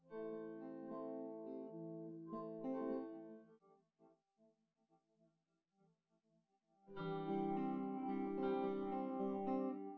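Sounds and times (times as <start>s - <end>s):
synthesizer without drums: 0.0s - 3.6s, 6.9s - 9.9s.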